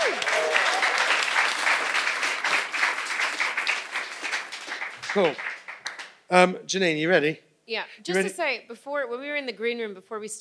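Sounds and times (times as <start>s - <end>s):
audience applause: 0.0s - 6.2s
speech: 5.2s - 5.4s, 6.3s - 10.3s.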